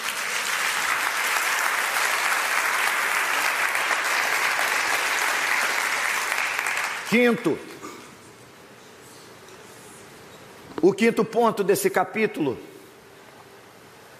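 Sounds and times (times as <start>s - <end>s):
audience applauding: 0.0s - 7.5s
speech: 7.1s - 7.7s, 10.9s - 12.7s.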